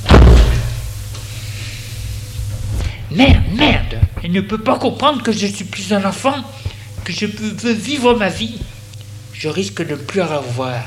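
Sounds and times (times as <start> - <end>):
apartment door closing with a heavy thud: 0.0 - 0.8
speech: 3.1 - 8.7, 9.4 - 10.8.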